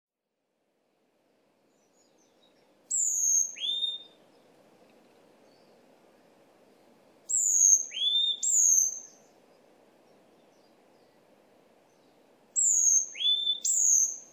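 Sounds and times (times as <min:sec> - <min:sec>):
varied tit whistled calls: 0:02.9 - 0:04.2, 0:07.3 - 0:09.2, 0:12.6 - 0:14.3.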